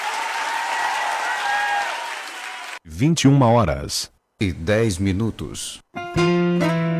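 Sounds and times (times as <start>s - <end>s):
audience applause for a man: 0.0s - 2.8s
speech: 3.0s - 6.8s.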